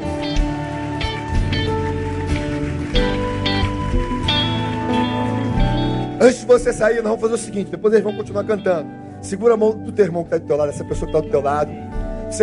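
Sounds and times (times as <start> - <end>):
audience applauding: 0.0 - 6.9
speech: 6.2 - 12.4.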